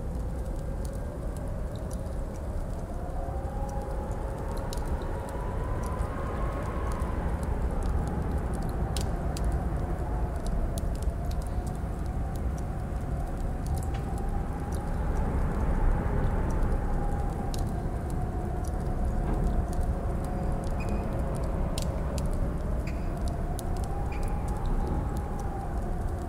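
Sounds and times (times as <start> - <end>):
castle ambience: 0.2 - 26.2.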